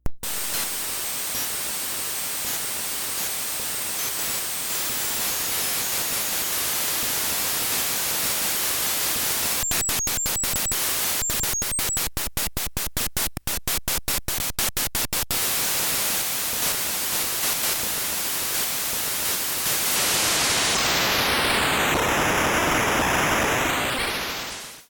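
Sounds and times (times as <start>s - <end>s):
noise: 0.0s - 24.8s.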